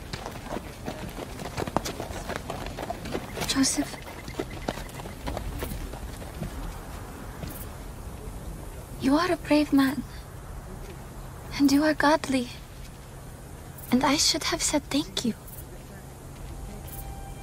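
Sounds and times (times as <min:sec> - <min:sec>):
donkey hooves clip-clopping while walking: 0:00.0 - 0:08.9
speech: 0:03.6 - 0:04.1, 0:09.0 - 0:10.1, 0:11.6 - 0:12.6, 0:13.9 - 0:15.4.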